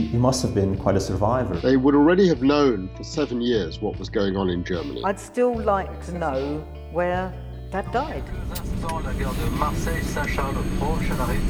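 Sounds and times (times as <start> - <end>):
speech: 0.0 - 11.4
aircraft engine drone at Lviv Airport: 7.8 - 11.4.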